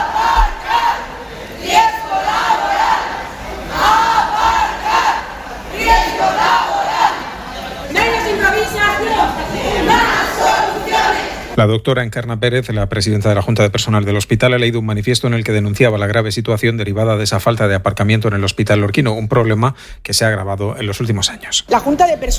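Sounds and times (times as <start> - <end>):
protesters chanting slogans: 0.0 - 11.6
speech: 11.6 - 22.3.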